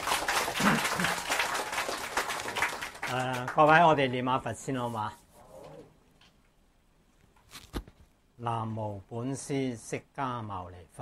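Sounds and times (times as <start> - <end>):
audience applause: 0.0 - 4.0
speech: 3.1 - 5.2, 8.4 - 10.9.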